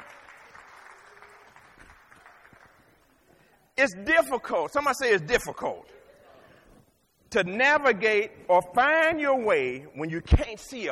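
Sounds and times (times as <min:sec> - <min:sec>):
crowd applauding with hand clapping: 0:00.0 - 0:03.2
speech: 0:03.8 - 0:06.0, 0:07.3 - 0:10.9.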